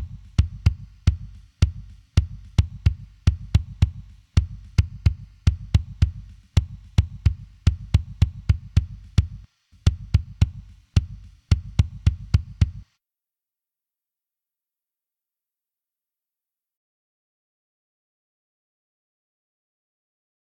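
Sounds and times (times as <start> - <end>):
drums: 0.0 - 12.9.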